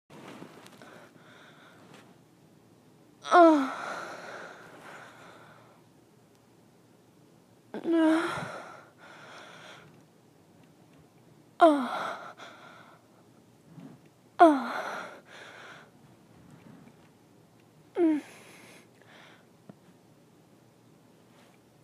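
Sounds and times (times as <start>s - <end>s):
super short person moaning: 3.2s - 4.1s, 7.8s - 8.6s, 11.6s - 12.3s, 14.4s - 15.0s, 18.0s - 18.4s.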